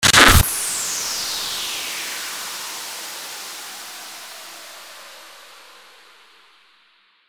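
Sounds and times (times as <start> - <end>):
starter whoosh: 0.0 - 1.5.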